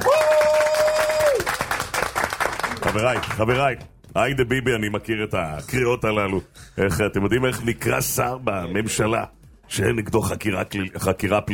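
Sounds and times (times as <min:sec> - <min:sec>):
crowd clapping at a political rally: 0:00.0 - 0:03.9
speech: 0:02.9 - 0:11.5.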